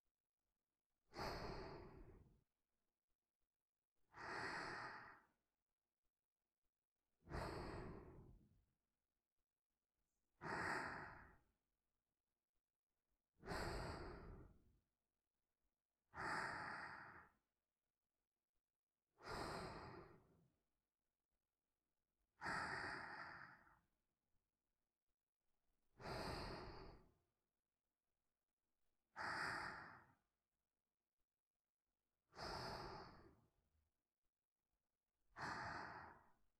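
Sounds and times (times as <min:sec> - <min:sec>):
person breathing in sleep: 0:01.0 - 0:02.5, 0:04.1 - 0:05.4, 0:07.2 - 0:08.6, 0:10.4 - 0:11.5, 0:13.4 - 0:14.7, 0:16.1 - 0:17.4, 0:19.1 - 0:20.4, 0:22.4 - 0:23.9, 0:25.9 - 0:27.2, 0:29.1 - 0:30.3, 0:32.2 - 0:33.6, 0:35.3 - 0:36.5.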